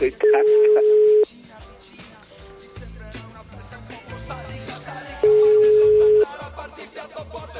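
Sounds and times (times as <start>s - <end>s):
speech: 0.0s - 0.8s
busy musical background: 0.0s - 7.5s
telephone ringing: 0.1s - 1.3s, 5.2s - 6.3s.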